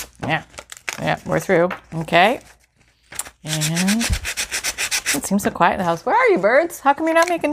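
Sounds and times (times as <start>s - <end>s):
speech: 0.3s - 2.5s, 3.5s - 4.3s, 5.1s - 7.5s
sanding with rough side of file: 3.5s - 5.2s.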